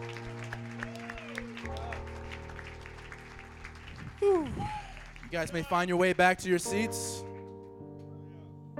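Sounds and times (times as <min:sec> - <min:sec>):
audience hand clapping: 0:00.0 - 0:06.4
speech: 0:04.2 - 0:07.2.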